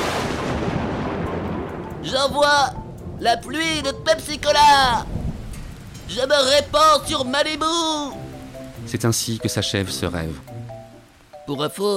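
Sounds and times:
thunder clap: 0.0 - 9.0
speech: 2.0 - 5.2, 6.1 - 8.2, 8.8 - 10.5, 11.5 - 11.9.

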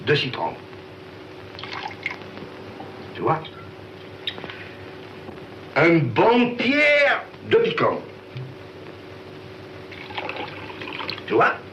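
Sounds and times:
speech: 0.0 - 0.7, 3.2 - 3.6, 5.8 - 8.1, 11.3 - 11.6
water poured in to make a lemon drink: 1.6 - 2.2, 9.9 - 11.3.

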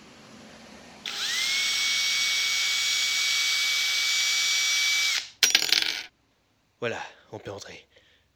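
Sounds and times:
hand drill boring into a door: 1.1 - 5.4
speech: 6.8 - 7.9.

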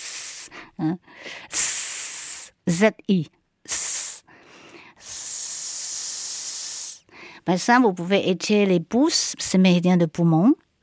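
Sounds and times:
person breathing out a sharp hissing sss sound: 0.0 - 2.6, 3.7 - 7.4
speech: 0.5 - 1.7, 2.7 - 3.8, 7.4 - 10.6.

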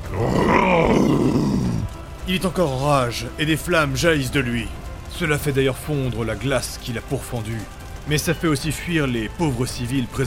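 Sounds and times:
troll howling in pain and frustration: 0.0 - 2.0
speech: 0.2 - 0.5, 2.3 - 10.2.

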